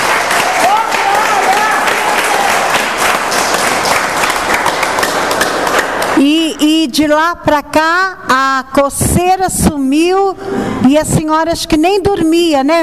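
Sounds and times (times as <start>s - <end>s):
audience applauding: 0.0s - 6.2s
speech: 6.2s - 12.8s.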